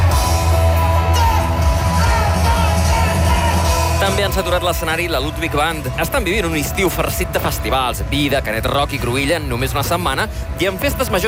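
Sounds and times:
concert audience screaming and cheering: 0.0s - 11.2s
speech: 4.2s - 11.2s.

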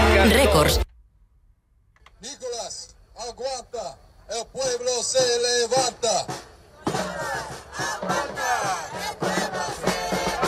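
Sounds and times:
speech: 0.6s - 0.9s, 2.2s - 9.1s
protesters chanting outside the Federal Court in New York: 5.8s - 10.4s.

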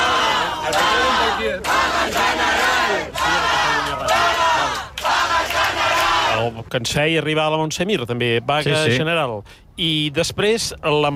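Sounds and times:
protest crowd chanting slogans: 0.0s - 6.5s
speech: 6.4s - 11.1s.

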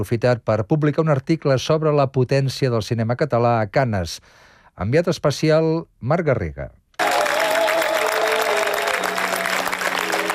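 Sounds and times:
speech: 0.0s - 6.8s
ovation after film screening: 7.0s - 10.3s.

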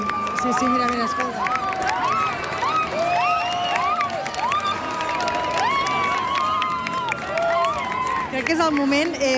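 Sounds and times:
audience cheering and shouting at a cyclist's stage appearance: 0.0s - 9.3s
speech: 0.4s - 1.7s, 8.4s - 9.3s
high rising shrieks and whoops: 1.1s - 8.2s.

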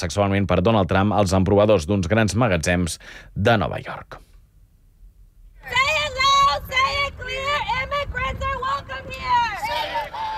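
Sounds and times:
speech: 0.0s - 4.3s
protest crowd shouting: 5.6s - 10.3s.

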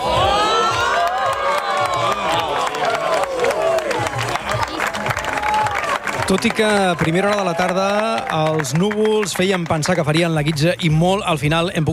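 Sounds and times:
crowd cheering at the Ebro Observatory during a solar eclipse: 0.0s - 10.8s
scattered clapping: 0.8s - 10.8s
speech: 6.3s - 11.9s.

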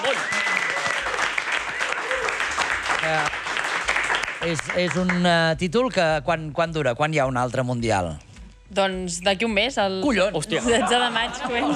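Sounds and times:
voices cheering: 0.0s - 2.6s
live audience applause: 0.0s - 5.2s
speech: 3.0s - 3.4s, 4.4s - 11.7s
laughter: 10.5s - 11.7s.

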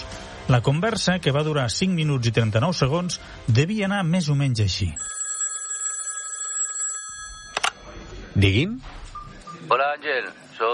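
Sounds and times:
speech: 0.5s - 5.2s, 8.4s - 9.0s, 9.7s - 10.7s
telephone ringing for an incoming call: 5.0s - 7.9s.

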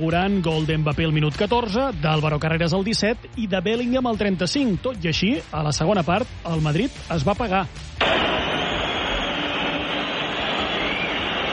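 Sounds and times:
speech: 0.0s - 8.3s
stadium crowd whistling at their team: 8.0s - 11.5s.

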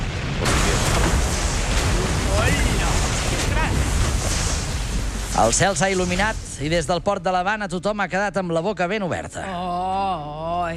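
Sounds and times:
large explosion sound effect: 0.0s - 7.6s
speech: 5.4s - 10.7s.

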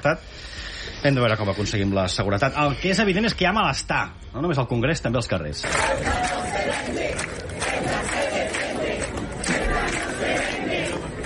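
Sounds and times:
speech: 0.0s - 8.2s
protest crowd chanting slogans: 5.6s - 11.2s.

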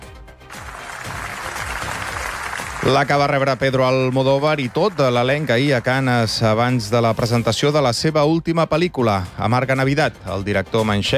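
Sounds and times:
ovation applause: 0.5s - 6.6s
speech: 2.8s - 11.1s.

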